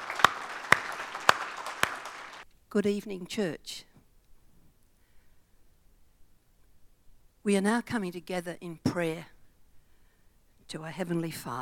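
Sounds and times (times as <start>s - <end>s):
church congregation hand claps: 0.0s - 2.4s
speech: 2.7s - 3.9s, 7.4s - 9.4s, 10.7s - 11.6s.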